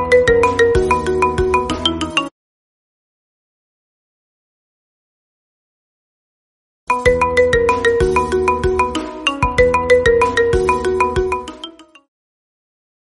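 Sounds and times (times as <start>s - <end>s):
marimba ringtone: 0.0s - 2.3s, 6.9s - 12.1s.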